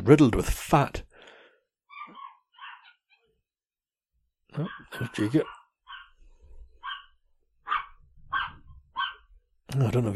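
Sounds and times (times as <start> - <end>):
speech: 0.0 - 1.1, 4.6 - 5.6, 9.7 - 10.1
dog barking at passerby outside: 1.9 - 3.3, 4.5 - 6.2, 6.8 - 9.4.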